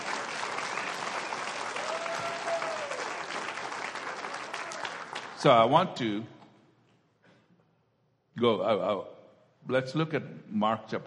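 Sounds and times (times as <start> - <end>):
audience applauding: 0.0 - 5.6
speech: 5.4 - 6.4, 8.4 - 11.0.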